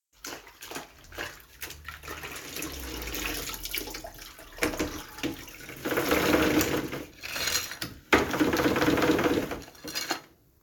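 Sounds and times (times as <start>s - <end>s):
mopping: 0.2s - 8.6s.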